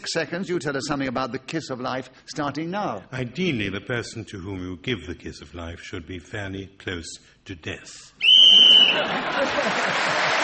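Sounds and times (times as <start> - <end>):
speech: 0.1 - 10.4
game show whistle: 8.2 - 9.1
laughter: 8.7 - 10.4.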